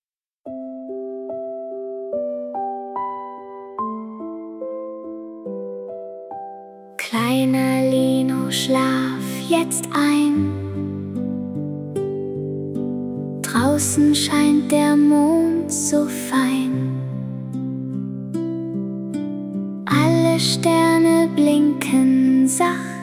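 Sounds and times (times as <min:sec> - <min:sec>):
lullaby: 0:00.6 - 0:23.0.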